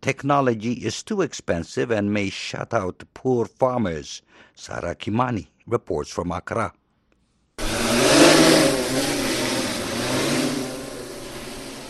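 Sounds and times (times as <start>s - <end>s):
speech: 0.0s - 6.8s
multispectral agricultural drone flying: 7.6s - 11.8s.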